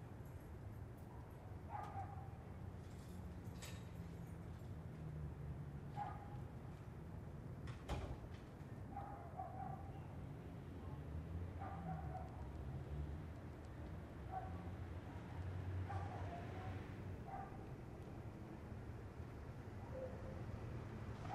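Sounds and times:
steady low traffic noise: 0.1s - 21.3s
faint dog barks: 1.1s - 2.4s, 5.9s - 6.4s, 8.9s - 10.2s, 10.8s - 12.8s, 14.2s - 17.8s, 19.7s - 20.6s, 21.2s - 21.3s.

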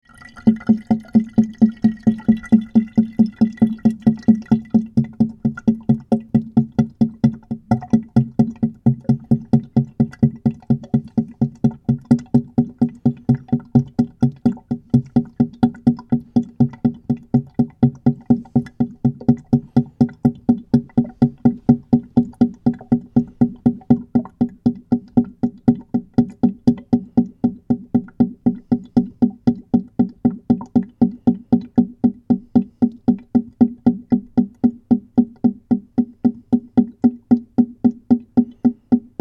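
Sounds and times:
airlock in sink waste pipe: 0.0s - 39.1s
water dripping in sink waste trap: 0.0s - 39.1s.

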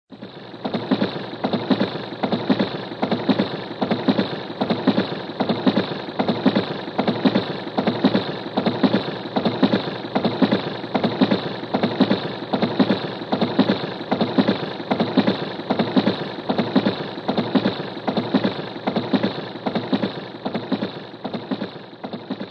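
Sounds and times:
locomotive train passing: 0.1s - 22.4s.

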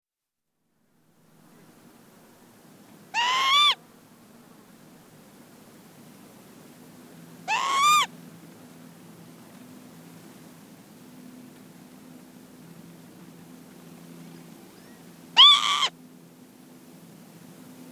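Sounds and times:
female Northern lapwing giving anxiety calls on the ground: 3.1s - 3.8s, 7.5s - 8.1s, 14.7s - 16.0s.

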